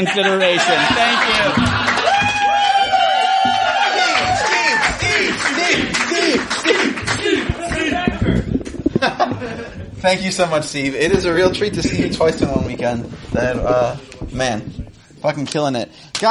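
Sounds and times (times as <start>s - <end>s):
speech: 0.0s - 1.9s, 10.0s - 16.2s
audience applause: 0.5s - 8.9s
laughter: 7.9s - 10.4s.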